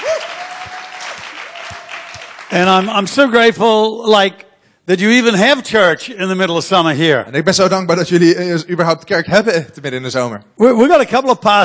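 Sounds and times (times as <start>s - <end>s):
audience applause: 0.0s - 3.2s
speech: 2.5s - 11.6s.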